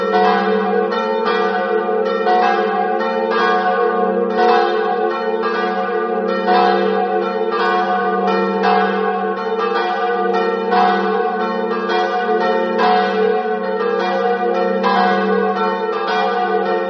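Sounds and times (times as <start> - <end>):
bells ringing in Sauris: 0.0 - 16.8.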